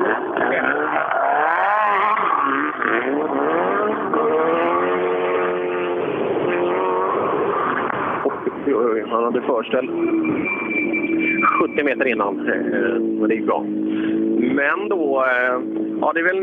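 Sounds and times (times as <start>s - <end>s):
powerful tractor pulling machine engine roaring under load: 0.0s - 16.4s
speech: 9.0s - 16.4s.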